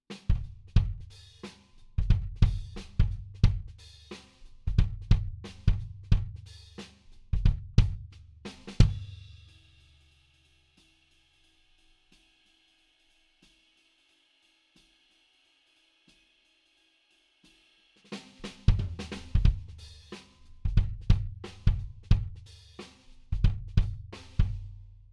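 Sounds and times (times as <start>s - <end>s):
kick drum: 0.3s - 1.1s, 2.0s - 3.7s, 4.7s - 6.4s, 7.4s - 8.1s, 18.7s - 19.7s, 20.7s - 22.4s, 23.4s - 24.7s.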